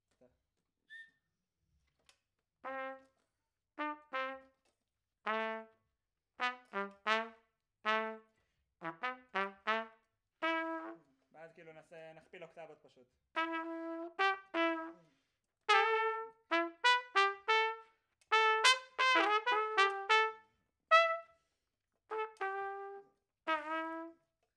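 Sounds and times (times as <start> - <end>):
trumpet: 2.6 - 3.2, 3.8 - 4.6, 5.3 - 5.8, 6.4 - 11.1, 13.4 - 15.1, 15.7 - 21.5, 22.1 - 24.3.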